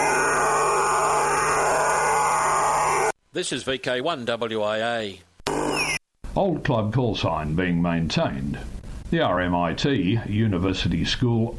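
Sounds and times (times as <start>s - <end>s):
phone-modulated multi-channel vocoder intruder signal on shortwave: 0.0s - 3.2s, 5.5s - 6.0s
speech: 3.4s - 5.3s, 6.4s - 11.5s.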